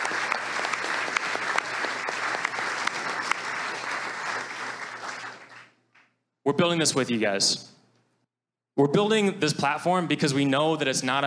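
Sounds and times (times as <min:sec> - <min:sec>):
audience applause: 0:00.0 - 0:05.8
speech: 0:06.5 - 0:07.7, 0:08.8 - 0:11.2.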